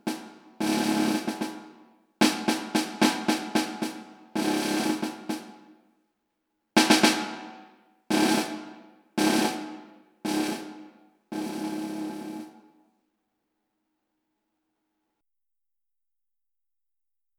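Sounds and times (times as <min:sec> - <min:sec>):
snare drum: 0:00.0 - 0:05.8, 0:06.8 - 0:12.8.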